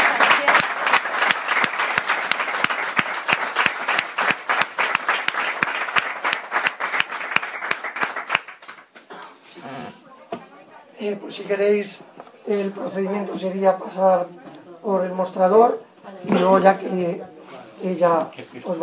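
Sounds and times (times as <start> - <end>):
audience applause: 0.0 - 9.0
speech: 11.1 - 18.8.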